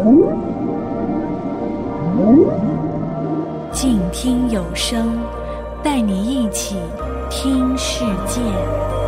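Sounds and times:
whale call: 0:00.0 - 0:03.7
speech: 0:04.2 - 0:08.9.

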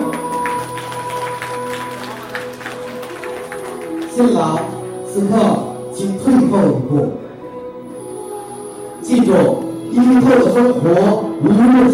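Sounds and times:
wedding guests applauding: 0:00.0 - 0:05.1
music with held tones: 0:00.0 - 0:11.9
speech: 0:04.2 - 0:07.2, 0:09.1 - 0:11.9.

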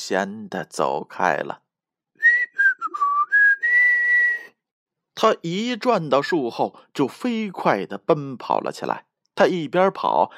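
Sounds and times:
speech: 0:00.1 - 0:01.6, 0:05.2 - 0:10.3
soft whistling: 0:02.2 - 0:04.6.

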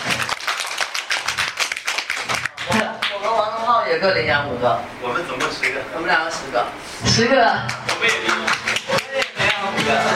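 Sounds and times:
applause: 0:00.0 - 0:03.3, 0:07.7 - 0:10.1
speech: 0:03.9 - 0:08.8, 0:09.8 - 0:10.1.

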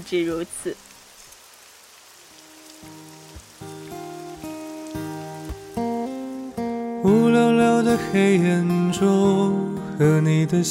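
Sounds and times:
speech: 0:00.0 - 0:00.9, 0:07.1 - 0:10.6
steady rain hissing: 0:00.0 - 0:08.4.

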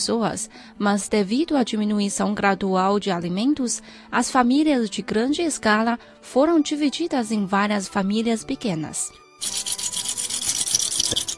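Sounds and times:
speech: 0:00.0 - 0:09.8
ostrich eggshell pieces polished by hand: 0:09.4 - 0:11.3.

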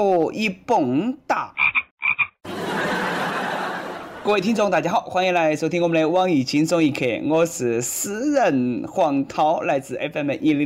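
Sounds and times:
speech: 0:00.0 - 0:01.6, 0:04.2 - 0:10.6
toad croaking: 0:01.5 - 0:02.4
laughter: 0:02.5 - 0:04.5.

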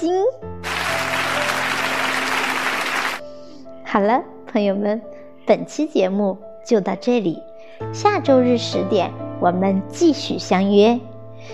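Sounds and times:
audience applause: 0:00.6 - 0:03.2
speech: 0:03.9 - 0:11.5.

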